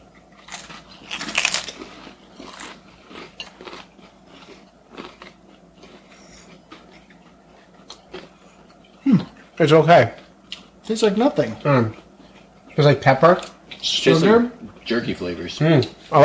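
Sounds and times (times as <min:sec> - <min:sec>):
people crunching and chewing tinned eel with bones: 0:00.0 - 0:16.2
speech: 0:09.1 - 0:10.2, 0:10.9 - 0:12.0, 0:12.8 - 0:16.2.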